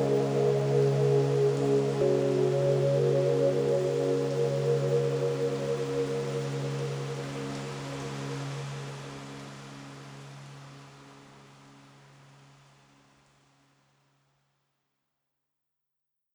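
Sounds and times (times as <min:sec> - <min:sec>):
white noise: 0:00.0 - 0:12.3.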